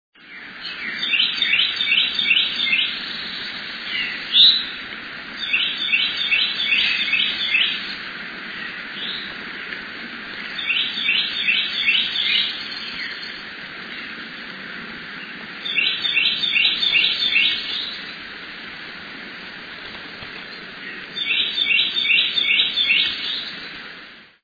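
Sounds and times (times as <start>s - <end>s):
birds outdoors: 0.2s - 24.3s.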